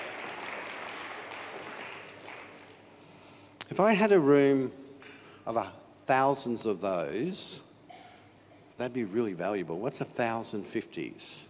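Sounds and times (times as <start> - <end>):
applause: 0.0 - 2.9
speech: 3.7 - 4.8, 5.5 - 7.7, 8.8 - 11.4.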